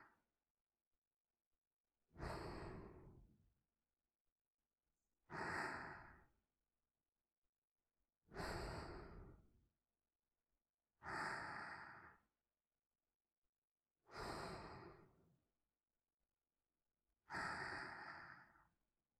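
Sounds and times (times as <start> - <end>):
person breathing in sleep: 2.2 - 3.3, 5.3 - 6.4, 8.3 - 9.5, 11.0 - 12.3, 14.1 - 15.2, 17.2 - 18.8.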